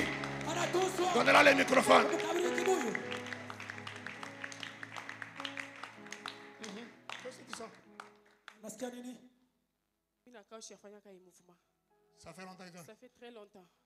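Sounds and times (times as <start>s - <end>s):
rhythmic clapping during a Sunday church service: 0.0s - 8.8s
speech: 0.7s - 3.1s, 8.7s - 9.3s, 10.3s - 13.8s.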